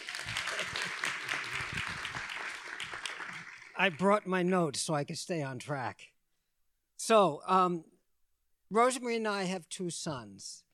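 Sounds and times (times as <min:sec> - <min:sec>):
audience clapping: 0:00.0 - 0:04.6
speech: 0:03.8 - 0:06.1, 0:07.0 - 0:07.9, 0:08.7 - 0:10.6.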